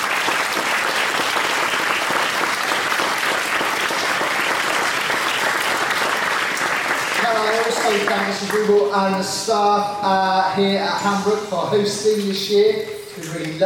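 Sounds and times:
audience applause: 0.0s - 8.9s
speech: 7.9s - 13.6s.

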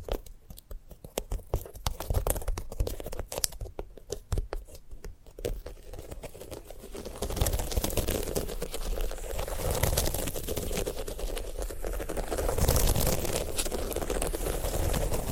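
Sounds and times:
sunflower head dry crackles and snaps: 0.0s - 15.3s
sunflower head rustling and rubbing: 0.0s - 15.3s.

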